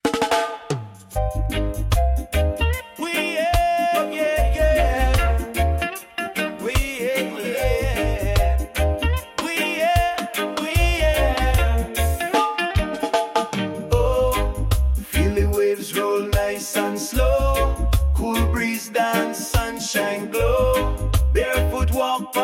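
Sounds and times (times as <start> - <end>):
reggae beach music: 0.0 - 22.4.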